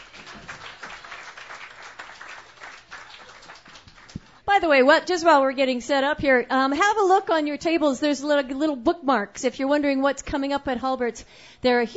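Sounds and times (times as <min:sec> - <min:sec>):
open-mic night audience applause: 0:00.0 - 0:04.4
speech: 0:04.6 - 0:11.9.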